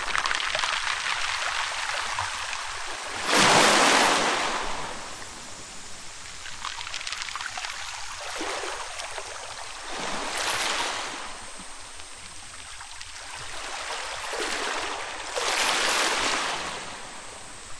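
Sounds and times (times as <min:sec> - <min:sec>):
pebble shoreline: 0:00.0 - 0:17.7.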